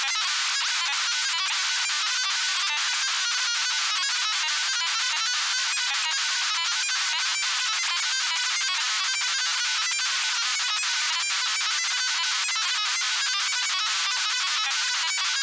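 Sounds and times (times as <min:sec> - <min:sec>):
science fiction lo-fi data stream loop: 0:00.0 - 0:15.4.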